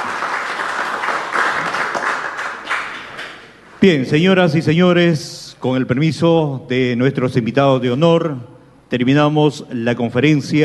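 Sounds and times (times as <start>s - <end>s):
audience applause: 0.0s - 3.5s
speech: 3.8s - 10.6s.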